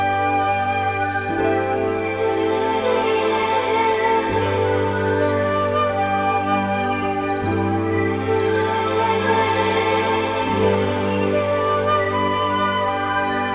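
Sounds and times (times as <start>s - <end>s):
flute melody: 0.0s - 13.5s.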